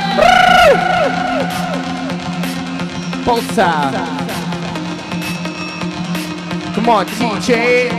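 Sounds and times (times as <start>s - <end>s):
audience cheering and whooping: 0.1s - 2.3s
speech: 3.5s - 4.1s, 6.8s - 7.9s.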